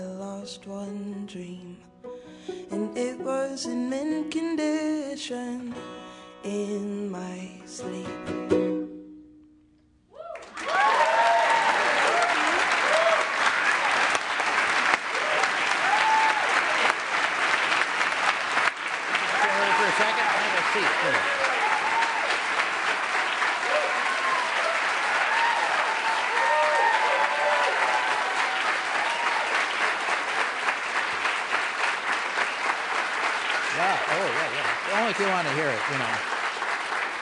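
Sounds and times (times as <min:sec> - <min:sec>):
speech: 0:00.5 - 0:08.7
scattered voices and whoops: 0:10.1 - 0:13.4, 0:15.2 - 0:16.6, 0:19.3 - 0:22.4, 0:23.6 - 0:29.6
large audience applause: 0:10.3 - 0:37.2.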